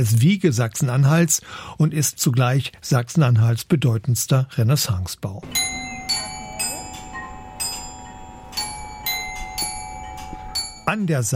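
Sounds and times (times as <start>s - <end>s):
speech: 0.0s - 5.8s, 10.9s - 11.3s
glockenspiel chimes at the Bernburger Rathaus: 5.4s - 11.1s.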